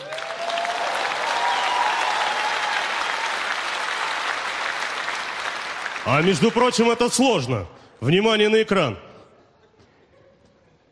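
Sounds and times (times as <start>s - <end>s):
audience applause: 0.0s - 7.2s
speech: 6.0s - 9.1s.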